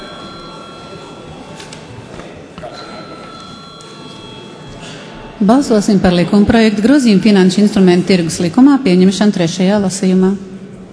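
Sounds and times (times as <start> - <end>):
parliament voting bell ringing: 0.0 - 1.6, 2.7 - 5.8
speech: 5.4 - 10.5.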